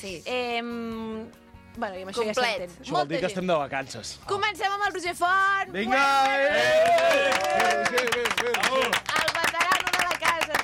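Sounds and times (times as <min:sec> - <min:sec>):
speech: 0:00.0 - 0:09.2
overlapping voices cheering: 0:05.9 - 0:09.0
crowd clapping: 0:06.0 - 0:10.6.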